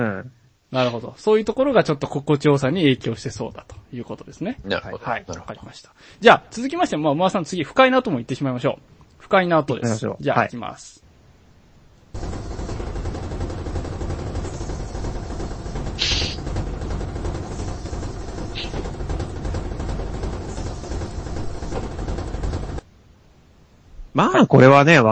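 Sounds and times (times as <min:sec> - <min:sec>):
speech: 0:00.0 - 0:11.0, 0:24.2 - 0:25.1
washing machine running: 0:12.2 - 0:22.9.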